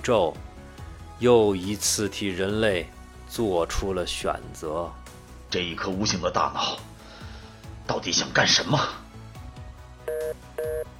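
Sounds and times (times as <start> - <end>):
speech: 0.0 - 0.5, 1.2 - 6.9, 7.9 - 9.0
telephone hang-up tone: 10.1 - 10.9.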